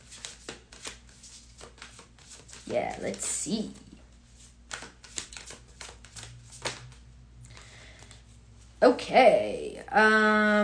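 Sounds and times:
tarot cards being shuffled: 0.0s - 8.2s
speech: 2.7s - 3.8s, 8.8s - 10.6s.

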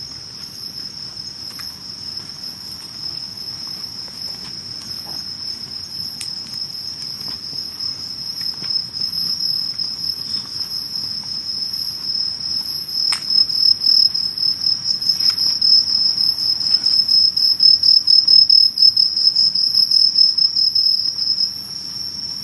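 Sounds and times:
insects trilling on a summer night: 0.0s - 22.4s
faint ticks: 6.2s - 7.4s.

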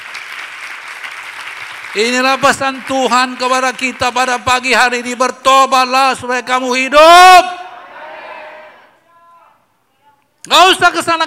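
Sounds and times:
audience applause: 0.0s - 4.4s
speech: 2.0s - 7.6s, 10.5s - 11.2s.

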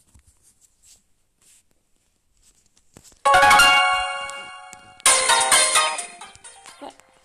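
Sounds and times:
chime-like ringing tones: 3.3s - 6.2s
bright video game background music: 3.3s - 6.8s.

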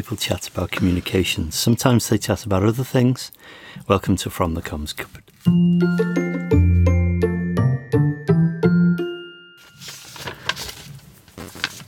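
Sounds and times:
speech: 0.0s - 6.3s
paper rustling: 0.2s - 1.4s, 4.6s - 6.2s, 9.6s - 11.8s
bright chiming jingle of repeated tuned notes: 5.5s - 10.1s.

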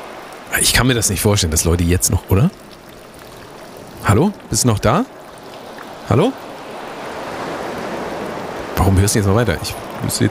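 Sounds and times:
waves: 0.0s - 10.2s
speech: 0.5s - 2.7s, 4.1s - 5.2s, 6.1s - 6.4s, 8.9s - 10.2s.

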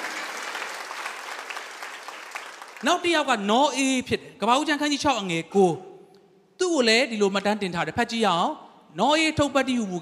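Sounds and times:
congregation clapping in praise during a Sunday afternoon church sermon: 0.0s - 3.4s
speech: 2.8s - 5.9s, 6.7s - 9.9s.

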